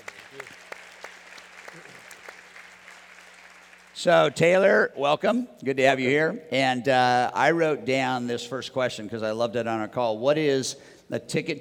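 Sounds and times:
audience applause: 0.0 - 4.0
speech: 4.0 - 11.5.

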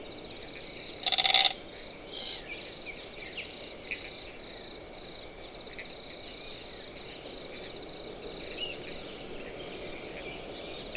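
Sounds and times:
bright insect-like hiss: 0.0 - 10.9
Glossy Black Cockatoo and her young calling under She-oaks: 0.6 - 1.6.

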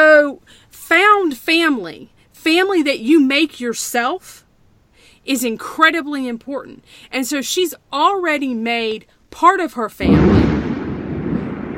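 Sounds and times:
speech: 1.5 - 4.4, 5.2 - 10.6
deep rumble of thunder from a storm: 10.0 - 11.7.

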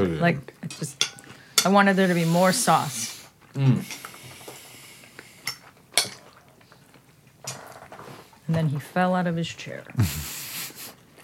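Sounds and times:
speech: 0.0 - 4.1, 8.5 - 10.2
cutlery clinking against plates while eating: 5.5 - 6.4.

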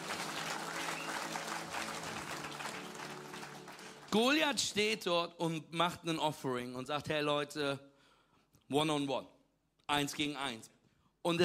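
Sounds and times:
audience applause: 0.0 - 4.4
speech: 4.1 - 7.9, 8.7 - 11.4.

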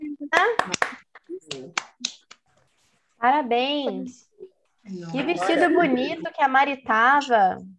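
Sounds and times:
scattered applause over a video call: 0.3 - 2.4
speech: 3.2 - 4.3, 4.9 - 7.7.

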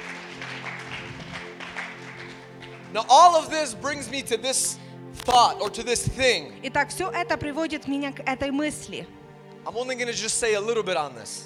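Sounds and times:
audience applause: 0.0 - 4.5
speech: 2.9 - 11.4.

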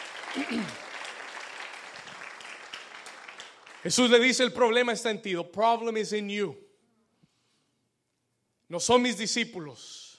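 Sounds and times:
audience applause: 0.0 - 3.9
speech: 0.4 - 0.8, 3.8 - 6.6, 8.7 - 10.0.

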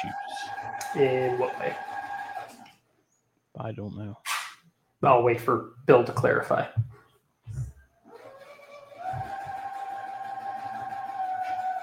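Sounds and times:
sewing machine running: 0.0 - 2.7, 8.1 - 11.8
speech: 0.9 - 1.9, 3.6 - 4.3, 5.0 - 6.9.

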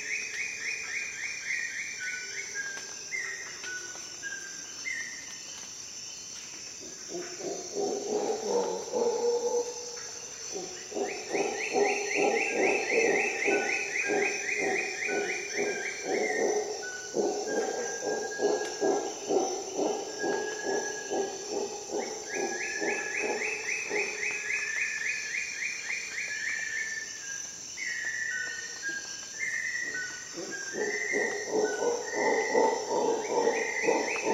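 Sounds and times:
insects buzzing: 0.0 - 34.3
howler monkeys roaring: 7.1 - 9.9, 10.5 - 24.2, 30.4 - 34.3.

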